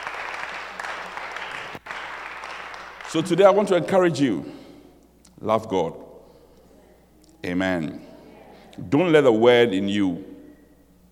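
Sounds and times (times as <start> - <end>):
audience clapping: 0.0 - 3.7
speech: 3.1 - 4.6, 5.4 - 6.0, 7.4 - 8.1, 8.8 - 10.3.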